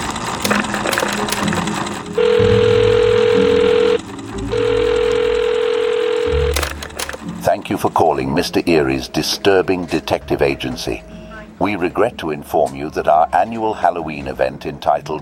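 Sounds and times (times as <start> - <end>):
answering machine clicks and rustles: 0.1 - 2.1, 6.5 - 7.5
answering machine telephone tones: 0.4 - 7.8
speech: 7.8 - 15.1.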